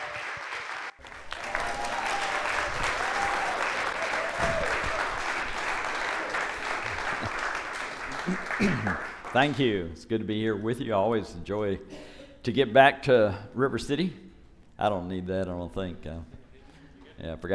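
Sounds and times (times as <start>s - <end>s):
audience applause: 0.0s - 9.6s
laughter: 1.1s - 9.3s
speech: 8.3s - 14.2s, 14.8s - 16.3s, 17.2s - 17.5s.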